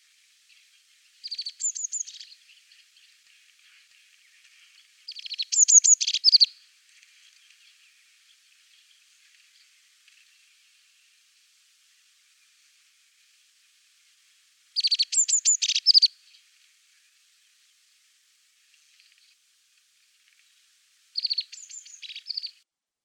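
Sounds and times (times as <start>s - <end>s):
azure tit calling: 1.2s - 2.4s, 5.1s - 6.6s, 14.8s - 16.4s, 21.2s - 22.6s.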